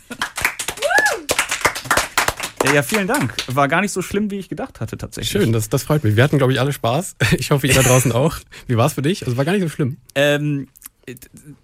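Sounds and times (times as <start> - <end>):
small audience applause: 0.0 - 3.5
person giving a whooping cheer: 0.8 - 1.4
speech: 2.7 - 11.6.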